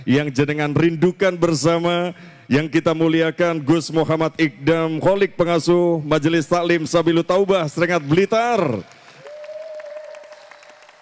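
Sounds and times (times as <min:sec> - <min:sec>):
speech: 0:00.0 - 0:09.0
audience applause: 0:07.9 - 0:11.0.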